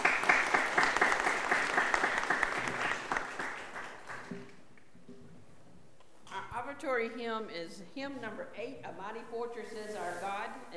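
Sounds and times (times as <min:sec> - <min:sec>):
audience applauding: 0:00.0 - 0:04.5
speech: 0:06.8 - 0:10.7.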